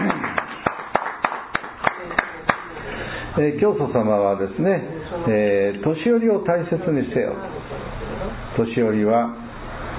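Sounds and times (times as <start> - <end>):
clapping for elderly people on Respect for the Aged Day in Japan: 0.0 - 2.8
speech: 3.4 - 7.5, 8.6 - 9.4.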